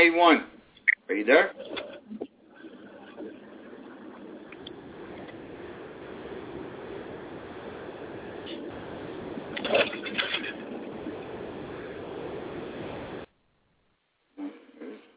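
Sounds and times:
speech: 0.0s - 2.2s
car driving with the window down: 1.6s - 13.3s.

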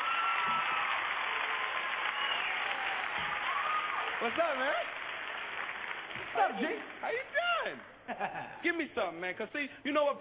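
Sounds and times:
audience applause greeting a performer: 0.0s - 7.4s
speech: 4.2s - 5.0s, 6.3s - 10.2s.

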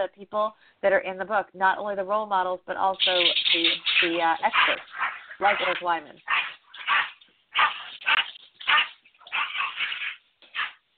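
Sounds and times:
speech: 0.0s - 6.4s
dogs fighting and barking: 3.0s - 10.9s.

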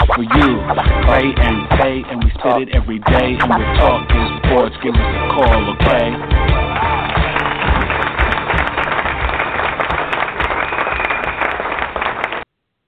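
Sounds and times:
speech: 0.2s - 6.9s
applause: 5.8s - 12.5s.

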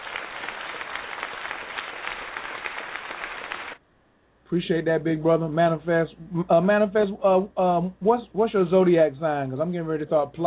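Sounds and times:
applause sound effect: 0.0s - 3.8s
speech: 4.5s - 10.4s.

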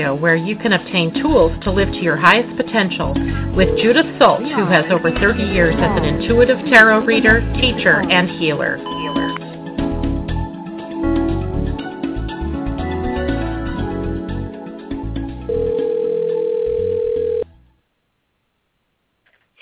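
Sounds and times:
speech: 0.0s - 9.2s
music: 0.0s - 17.8s
telephone ringing: 3.5s - 5.1s, 8.8s - 9.4s, 15.5s - 17.5s.

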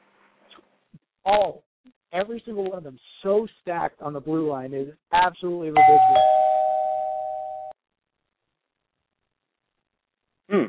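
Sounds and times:
speech: 1.3s - 6.4s
electronic doorbell ringing: 5.8s - 7.7s.

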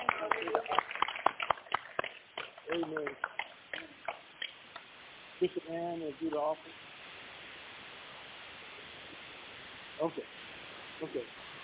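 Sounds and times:
audience clapping hands: 0.0s - 4.6s
speech: 2.7s - 3.4s, 5.4s - 6.9s, 10.0s - 10.4s, 11.0s - 11.4s.

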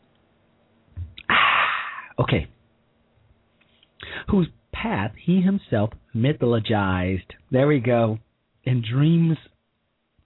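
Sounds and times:
soft low thump: 1.0s - 1.2s
speech: 2.2s - 2.6s, 4.3s - 9.5s.

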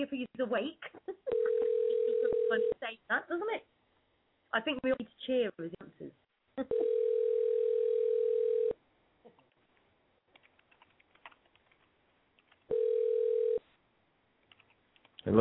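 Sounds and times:
speech: 0.0s - 1.2s, 2.5s - 3.7s, 4.5s - 6.9s, 15.2s - 15.4s
phone ringback tone while a call is placed: 1.3s - 2.8s, 6.7s - 8.8s, 12.7s - 13.6s.

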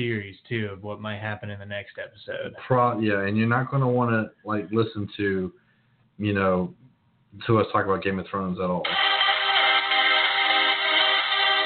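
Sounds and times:
speech: 0.0s - 5.6s, 6.2s - 9.1s
phone playing techno theme music: 8.9s - 11.6s.

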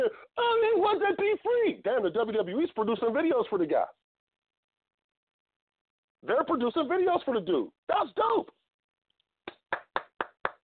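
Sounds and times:
speech: 1.2s - 4.0s, 6.2s - 8.6s
hands clapping: 9.4s - 10.6s.

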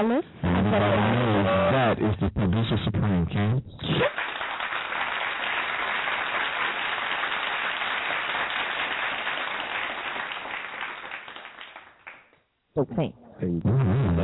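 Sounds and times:
speech: 0.0s - 4.2s, 12.8s - 14.2s
round of applause: 3.8s - 12.4s.

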